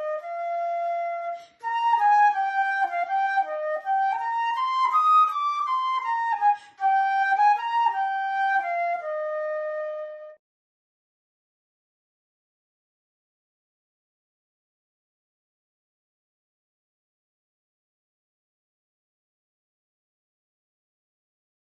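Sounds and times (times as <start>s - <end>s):
transverse flute: 0.0s - 10.4s.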